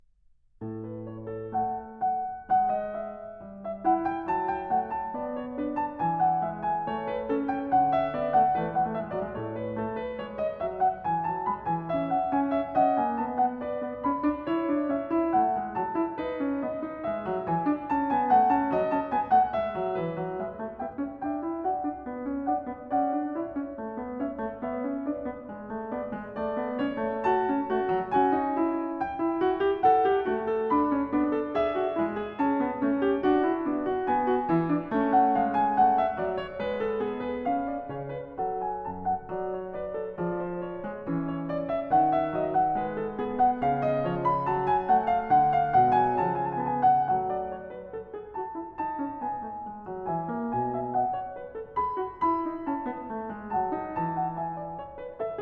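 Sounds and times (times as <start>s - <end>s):
prelude in A major: 0.6s - 55.4s.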